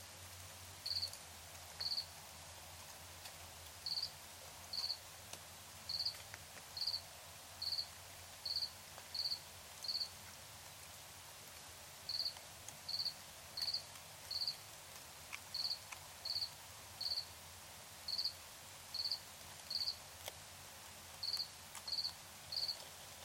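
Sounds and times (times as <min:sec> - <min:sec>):
background hiss: 0:00.0 - 0:23.2
cricket chirping: 0:00.8 - 0:01.2, 0:01.8 - 0:02.1, 0:03.8 - 0:04.1, 0:04.7 - 0:05.0, 0:05.9 - 0:06.2, 0:06.8 - 0:07.0, 0:07.6 - 0:10.1, 0:12.1 - 0:14.6, 0:15.5 - 0:17.3, 0:18.1 - 0:20.0, 0:21.2 - 0:22.8.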